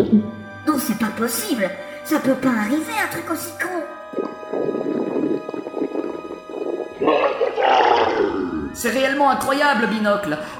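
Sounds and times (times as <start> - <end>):
speech: 0.0 - 4.8, 8.8 - 10.5
stomach gurgling: 4.0 - 8.8.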